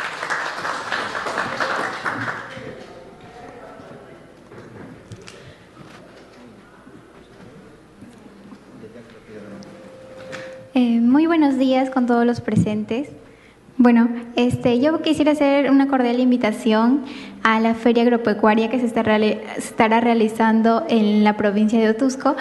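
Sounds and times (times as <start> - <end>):
crowd applauding: 0.0 - 3.4
murmuring voices: 1.2 - 10.6
speech: 10.8 - 13.2, 13.8 - 22.3.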